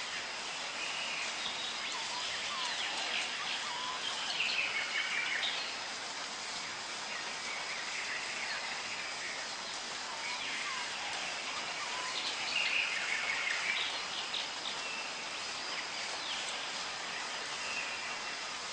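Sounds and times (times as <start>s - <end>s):
tropical birds calling: 0.0s - 18.7s.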